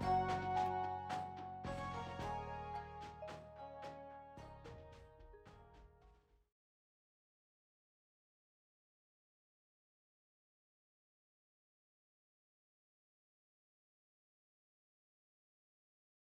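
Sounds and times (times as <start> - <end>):
happy romantic cinematic wedding music: 0.0 - 5.7.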